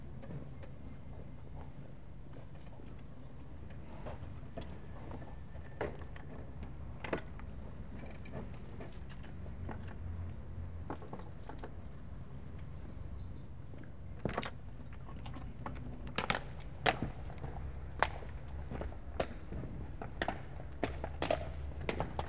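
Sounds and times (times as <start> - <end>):
one horse and cart at walk approaching: 0.0 - 22.2.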